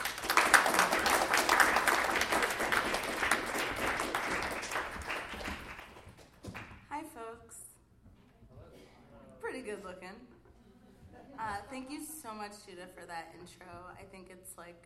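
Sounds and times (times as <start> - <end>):
audience applause welcoming a poet at The Poetry Project: 0.0 - 6.8
speech: 9.7 - 10.3, 11.5 - 14.8.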